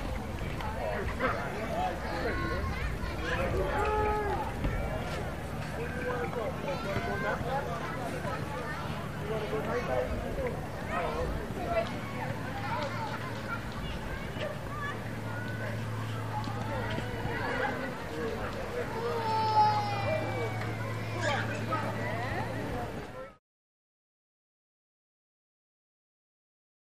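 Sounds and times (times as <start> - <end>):
beach ambience: 0.0 - 23.3.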